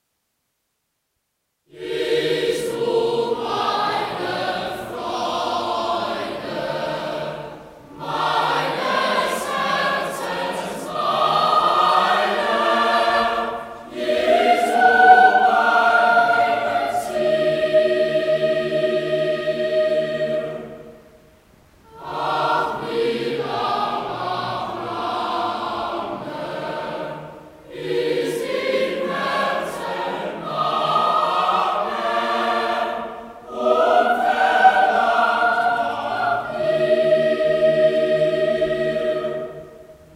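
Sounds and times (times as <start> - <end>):
choir singing: 1.7 - 40.1.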